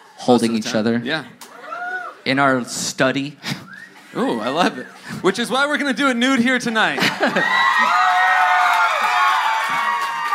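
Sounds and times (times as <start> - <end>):
speech: 0.2 - 1.4, 2.2 - 8.0
laughter: 6.9 - 7.9
audience applauding: 7.2 - 10.3.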